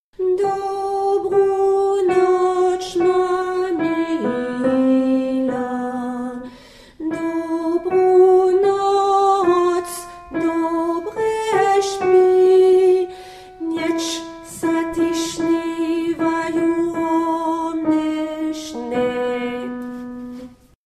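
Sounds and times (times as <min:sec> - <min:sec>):
alto voice singing: 0:00.2 - 0:20.6.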